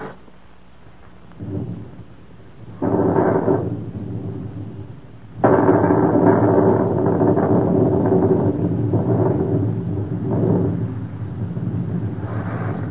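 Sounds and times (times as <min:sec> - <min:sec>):
thunder: 0:01.3 - 0:12.9.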